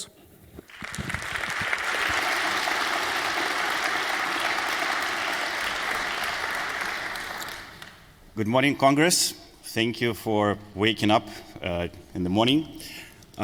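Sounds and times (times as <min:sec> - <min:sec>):
audience applause: 0:00.7 - 0:08.1
speech: 0:08.4 - 0:13.4.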